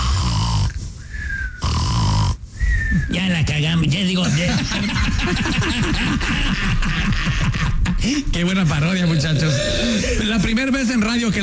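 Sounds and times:
person snoring: 0.0 - 2.4, 9.1 - 10.5
speech: 3.0 - 11.4
laughter: 4.2 - 10.6.

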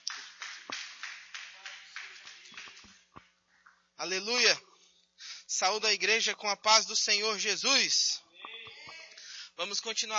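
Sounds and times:
audience clapping in rhythm: 0.0 - 3.3
speech: 4.0 - 4.7, 5.5 - 8.2, 9.6 - 10.1.

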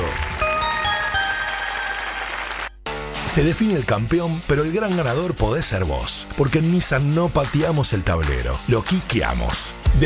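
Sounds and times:
audience applause at the end of a show: 0.0 - 2.8
speech: 3.4 - 10.0.

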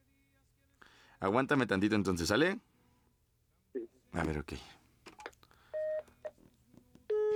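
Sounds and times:
speech: 1.2 - 2.7, 4.1 - 4.8
telephone keypad tones as a number is redialed: 5.8 - 6.1, 7.1 - 7.3.

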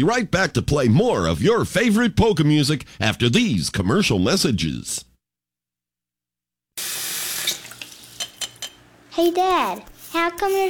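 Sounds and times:
speech: 0.0 - 5.1, 9.2 - 10.6
water running from a faucet: 6.8 - 8.7.

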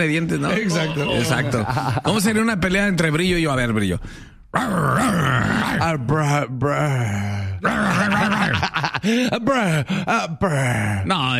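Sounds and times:
speech: 0.0 - 11.3
laughter: 0.6 - 2.2, 7.8 - 9.8
person imitating a dog growling and panting: 4.5 - 5.8, 7.6 - 8.6.

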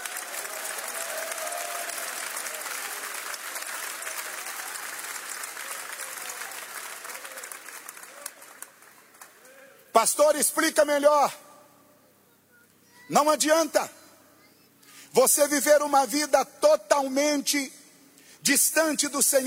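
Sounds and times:
crowd applause: 0.0 - 9.6
speech: 10.0 - 11.4, 13.1 - 14.0, 15.2 - 17.8, 18.4 - 19.4.

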